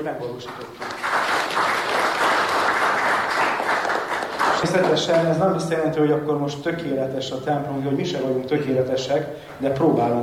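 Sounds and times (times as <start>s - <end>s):
speech: 0.0s - 1.7s, 4.6s - 10.2s
church congregation applauding those who renovated the pews and heating: 0.2s - 5.5s.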